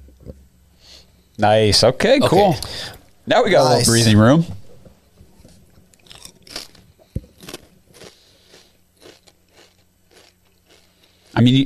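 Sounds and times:
speech: 1.0s - 4.6s, 11.4s - 11.6s
crunching a chip: 5.9s - 11.6s.

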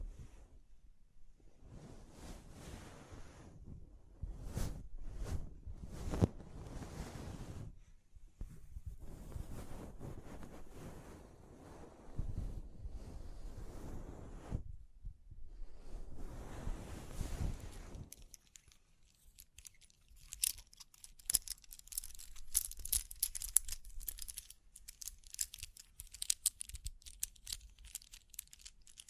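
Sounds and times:
scratching and brushing strokes: 1.6s - 3.6s, 4.3s - 7.7s, 8.5s - 14.6s, 15.7s - 29.0s
dense bright crinkles: 17.2s - 29.0s.

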